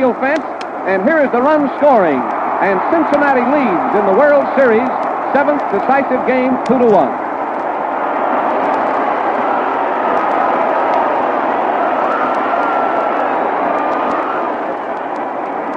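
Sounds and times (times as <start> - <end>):
speech: 0.0 - 7.2
stadium crowd noise at baseball game in Cincinnati: 0.0 - 15.7.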